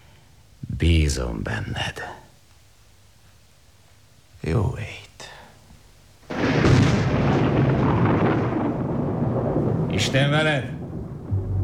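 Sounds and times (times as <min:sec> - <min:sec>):
speech: 0:00.8 - 0:02.2, 0:10.2 - 0:10.8
thunder: 0:06.3 - 0:11.6.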